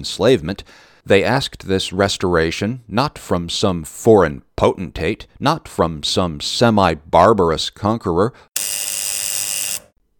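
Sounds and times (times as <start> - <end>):
speech: 0.0 - 8.7
buzzer sound effect: 8.6 - 10.0.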